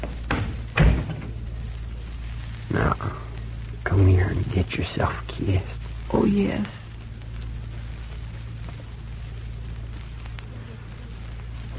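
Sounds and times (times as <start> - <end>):
hum: 0.0 - 11.7
door pulled shut: 0.3 - 1.4
speech: 4.0 - 6.8.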